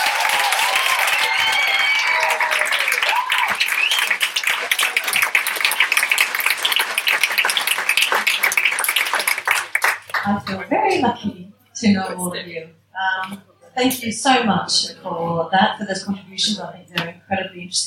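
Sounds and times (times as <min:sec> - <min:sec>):
cheers and whoops: 0:00.0 - 0:06.1
audience applause: 0:00.0 - 0:10.4
speech: 0:10.5 - 0:17.8.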